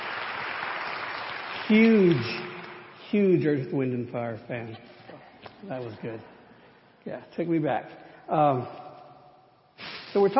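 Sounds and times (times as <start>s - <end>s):
audience applause: 0.0s - 2.7s
speech: 1.7s - 2.5s, 3.1s - 4.9s, 5.6s - 6.3s, 7.0s - 8.8s, 10.1s - 10.3s.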